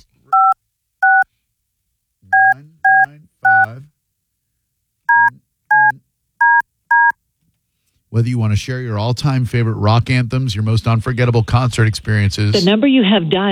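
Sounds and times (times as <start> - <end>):
touch-tone telephone keypad dialing a number: 0.3 - 1.2, 2.3 - 3.7, 5.1 - 7.2
speech: 8.2 - 13.5.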